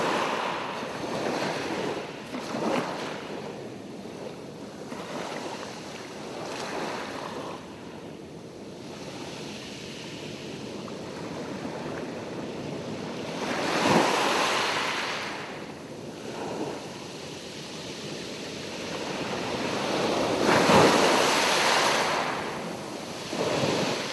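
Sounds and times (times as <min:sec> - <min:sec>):
beach ambience in Fiji: 0:00.0 - 0:24.1.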